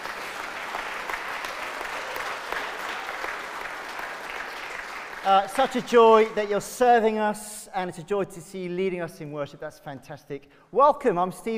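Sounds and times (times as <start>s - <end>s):
audience clapping in a large room: 0.0s - 6.5s
speech: 5.2s - 11.5s.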